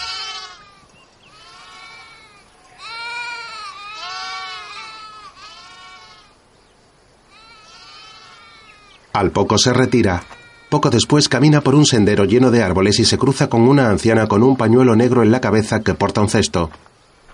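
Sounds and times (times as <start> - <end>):
sheep bleating: 0.0 - 6.4, 7.3 - 11.0
soft hiss: 0.0 - 17.3
speech: 9.2 - 16.9.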